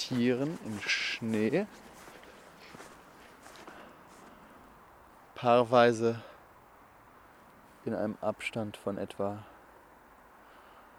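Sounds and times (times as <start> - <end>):
footsteps crunching across a snowy field: 0.0 - 5.0
low outdoor hiss: 0.0 - 10.9
speech: 0.1 - 1.9, 5.4 - 6.3, 7.8 - 9.5.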